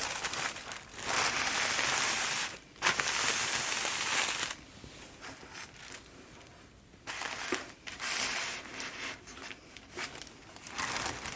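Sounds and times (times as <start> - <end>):
paper packaging crumpled and crushed: 0.0 - 4.6, 5.2 - 11.3.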